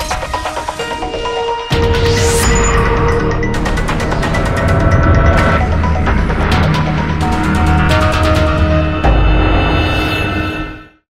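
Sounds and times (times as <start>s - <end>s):
unusual transition sound: 0.2s - 10.7s.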